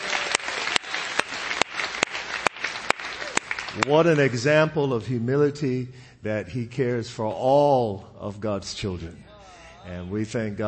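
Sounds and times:
audience clapping hands: 0:00.0 - 0:04.6
speech: 0:03.7 - 0:10.6.

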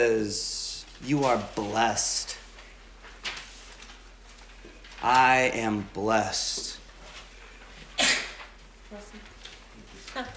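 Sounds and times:
speech: 0:00.0 - 0:02.4, 0:05.0 - 0:06.8
person sneezing: 0:08.0 - 0:08.4.

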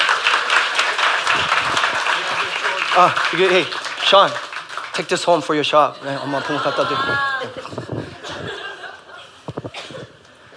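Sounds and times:
church congregation applauding during a Korean worship service: 0:00.0 - 0:07.8
speech: 0:03.0 - 0:07.8
laughter: 0:05.7 - 0:09.5.

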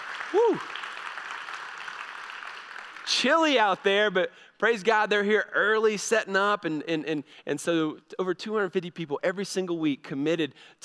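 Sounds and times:
audience applause: 0:00.0 - 0:03.6
speech: 0:00.3 - 0:00.8, 0:03.1 - 0:10.8.

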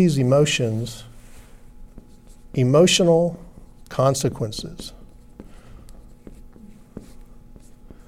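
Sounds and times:
speech: 0:00.0 - 0:01.1, 0:02.5 - 0:05.0
writing the letter C on a board: 0:01.9 - 0:02.7, 0:03.6 - 0:08.0.

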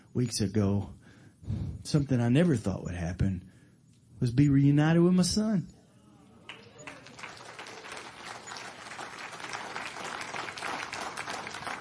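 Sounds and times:
speech: 0:00.2 - 0:03.5, 0:04.2 - 0:05.8
audience clapping: 0:06.4 - 0:11.7.

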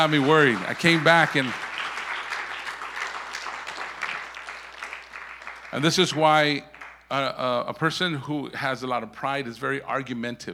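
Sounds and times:
speech: 0:00.0 - 0:01.6, 0:05.7 - 0:10.5
congregation applause during a church service: 0:00.0 - 0:07.6.

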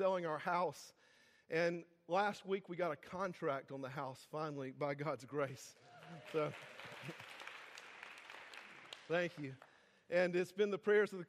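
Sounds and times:
speech: 0:00.0 - 0:07.1, 0:09.1 - 0:11.2
audience applause: 0:06.0 - 0:09.7.

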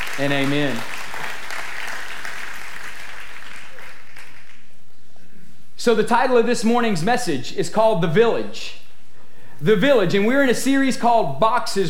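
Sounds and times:
audience applause: 0:00.0 - 0:04.7
speech: 0:00.2 - 0:00.9, 0:05.8 - 0:08.8, 0:09.6 - 0:11.8.

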